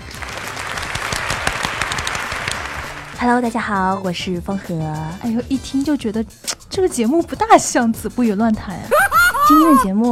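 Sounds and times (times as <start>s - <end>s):
clapping applause: 0.0s - 3.3s
speech: 3.2s - 10.1s
laughter: 8.9s - 9.9s.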